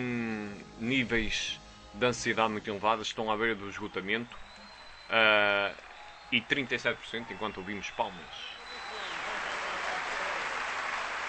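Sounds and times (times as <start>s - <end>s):
speech: 0.9s - 4.5s, 5.1s - 8.6s
faint applause at a 1998 concert: 3.7s - 11.2s.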